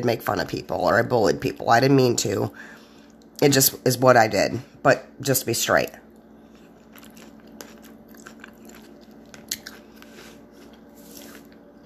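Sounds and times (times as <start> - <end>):
speech: 0.0 - 2.8, 3.4 - 6.0
low hum: 0.0 - 11.8
raw celery being bitten and chewed: 6.4 - 11.8.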